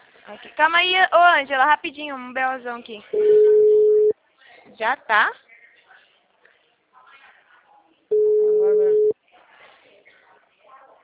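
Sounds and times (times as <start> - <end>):
speech: 0.3 - 3.5, 4.7 - 5.4
ringback tone from an unanswered telephone call: 3.2 - 4.1, 8.1 - 9.1.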